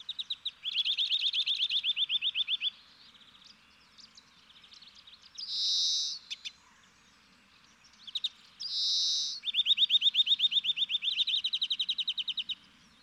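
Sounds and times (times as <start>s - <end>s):
nuthatch calling: 0.0s - 2.7s, 5.4s - 6.6s, 8.1s - 12.6s
European greenfinch singing: 0.0s - 6.8s, 7.8s - 13.0s.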